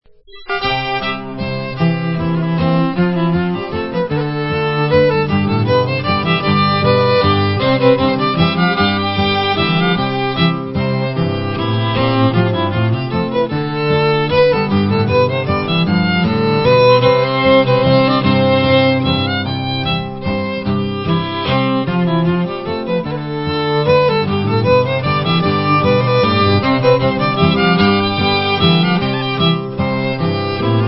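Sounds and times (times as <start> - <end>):
Swedish waltz on fiddle: 0.3 - 30.8.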